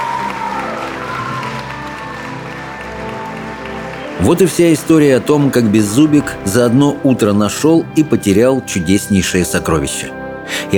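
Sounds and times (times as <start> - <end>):
crowd cheering and clapping in welcome: 0.0 - 7.0
speech: 4.2 - 10.7.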